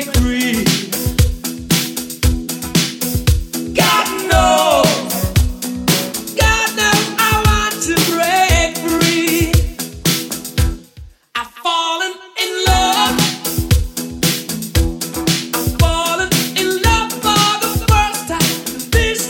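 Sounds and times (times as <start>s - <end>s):
80s style drum machine beat: 0.0s - 11.1s, 12.7s - 19.2s.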